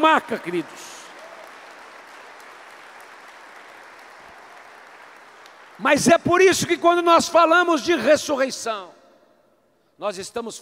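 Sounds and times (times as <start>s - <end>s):
speech: 0.0s - 1.0s, 5.8s - 9.0s, 10.0s - 10.6s
audience applauding: 0.0s - 7.0s.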